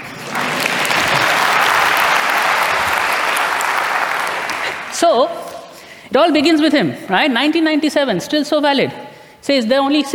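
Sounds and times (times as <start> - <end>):
audience round of applause: 0.0 - 5.0
speech: 5.0 - 5.4, 6.1 - 10.1.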